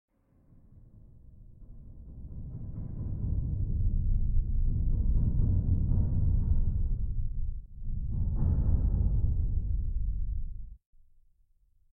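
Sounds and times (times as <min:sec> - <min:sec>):
deep rattle: 0:01.8 - 0:10.8.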